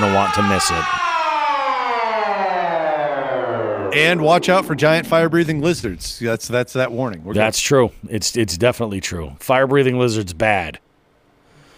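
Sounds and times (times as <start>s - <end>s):
alarm siren: 0.0s - 6.0s
speech: 0.2s - 1.0s, 3.9s - 10.8s.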